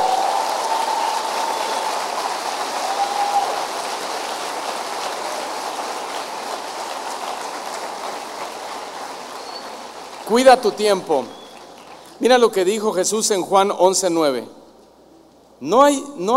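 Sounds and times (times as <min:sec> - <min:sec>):
loud audience applause: 0:00.0 - 0:12.7
speech: 0:10.3 - 0:11.4, 0:12.2 - 0:14.6, 0:15.6 - 0:16.3.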